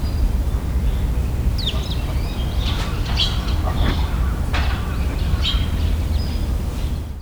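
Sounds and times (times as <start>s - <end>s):
bird calls with whistled and chirping notes: 0.1s - 7.2s.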